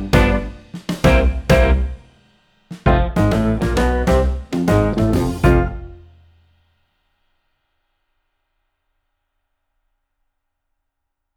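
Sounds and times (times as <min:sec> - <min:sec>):
jazz backing track: 0:00.0 - 0:02.1, 0:02.7 - 0:06.2.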